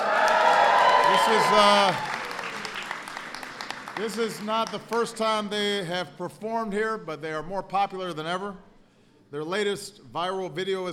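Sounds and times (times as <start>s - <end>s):
voices cheering and whooping: 0.0s - 2.2s
audience clapping: 0.0s - 5.4s
speech: 1.2s - 2.2s, 4.0s - 8.7s, 9.3s - 10.9s.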